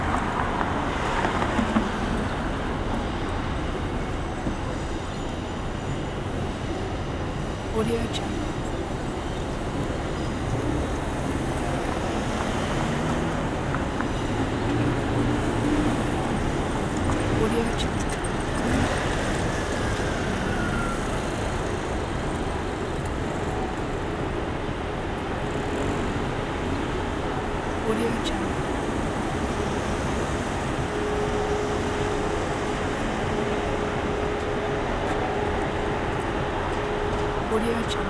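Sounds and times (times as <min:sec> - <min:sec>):
pedestrians on an urban street: 0:00.0 - 0:38.0
urban street traffic: 0:00.0 - 0:38.0.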